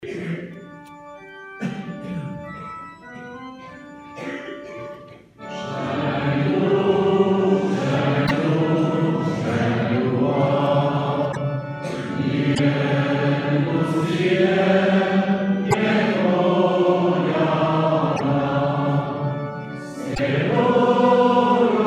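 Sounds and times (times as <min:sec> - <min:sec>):
Basque chants: 0:05.4 - 0:21.8.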